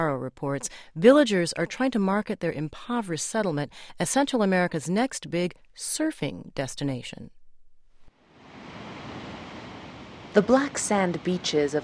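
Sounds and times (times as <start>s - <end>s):
speech: 0.0s - 7.4s, 10.3s - 11.8s
ocean waves on black sand beaches of El Paredón: 8.1s - 11.8s.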